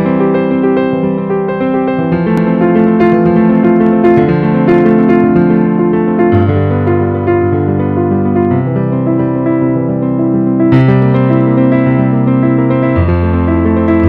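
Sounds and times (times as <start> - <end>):
piano prelude: 0.0 - 14.0.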